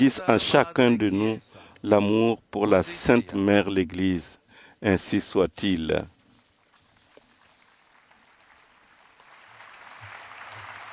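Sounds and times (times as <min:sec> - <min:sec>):
speech: 0:00.0 - 0:06.2
crowd applause: 0:07.8 - 0:10.9.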